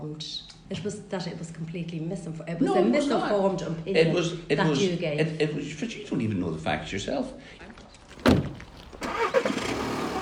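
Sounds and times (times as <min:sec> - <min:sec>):
speech: 0:00.0 - 0:07.6
sharp thump: 0:08.1 - 0:09.2
car engine and road noise driving up Dunsink Lane in Dublin: 0:08.1 - 0:10.2.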